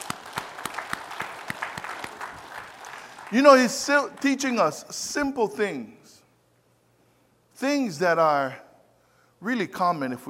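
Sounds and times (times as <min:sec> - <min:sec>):
audience clapping: 0:00.0 - 0:04.5
speech: 0:03.3 - 0:06.0, 0:07.6 - 0:08.6, 0:09.4 - 0:10.2.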